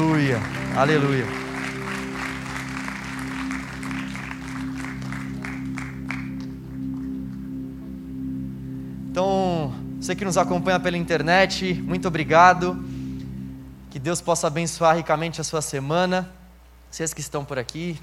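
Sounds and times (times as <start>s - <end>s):
audience applause: 0.0s - 6.8s
steady low hum: 0.0s - 16.9s
speech: 0.2s - 1.4s, 10.1s - 12.9s, 14.0s - 18.0s.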